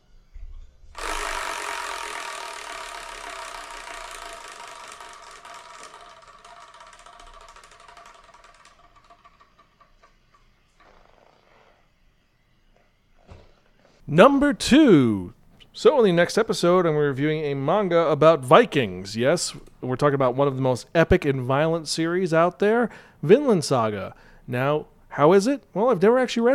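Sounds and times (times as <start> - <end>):
Wheel of Fortune style prize wheel spun by hand: 1.0 - 11.4
speech: 14.1 - 26.5.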